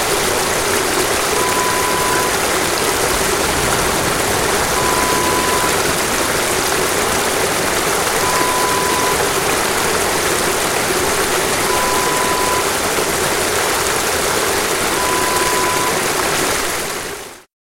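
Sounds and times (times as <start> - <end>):
fast flowing water: 0.0 - 17.5.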